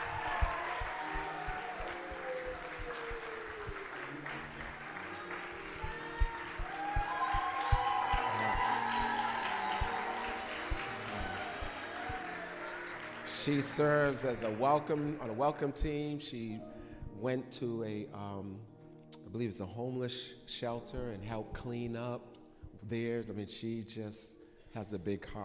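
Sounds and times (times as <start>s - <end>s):
church congregation clapping for a volunteer: 0.0s - 15.8s
speech: 13.5s - 18.7s, 19.3s - 25.4s.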